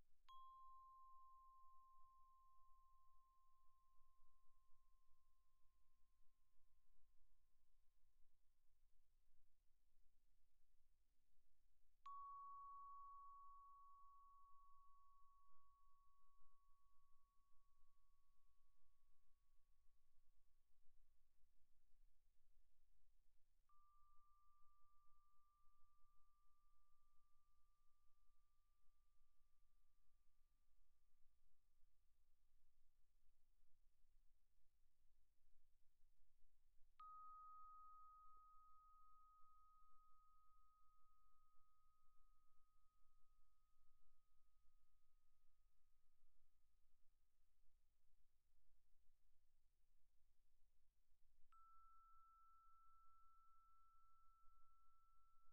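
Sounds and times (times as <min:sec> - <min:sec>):
soft plastic bells: 0:00.0 - 0:05.9, 0:12.0 - 0:18.3, 0:37.0 - 0:44.7, 0:51.4 - 0:55.5.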